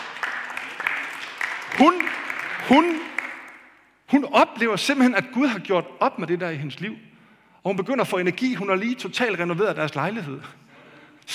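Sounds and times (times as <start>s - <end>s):
audience clapping: 0.0s - 3.9s
speech: 1.8s - 3.1s, 4.1s - 10.6s.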